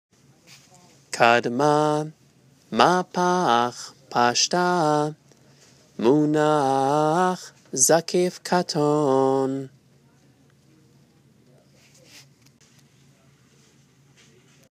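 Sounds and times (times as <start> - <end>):
person chanting Torah with trope: 0.5 - 5.2, 5.9 - 9.7.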